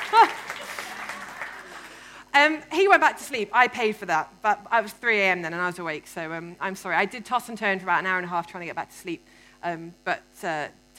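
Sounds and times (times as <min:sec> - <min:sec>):
applause sound effect: 0:00.0 - 0:02.0
laughter: 0:00.0 - 0:02.0
speech: 0:02.4 - 0:10.9.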